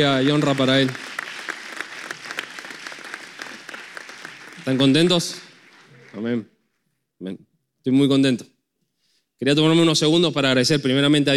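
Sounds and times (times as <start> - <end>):
speech: 0.0 - 1.1, 4.7 - 5.4, 6.1 - 6.5, 7.2 - 8.5, 9.4 - 11.3
audience applause: 0.0 - 6.4.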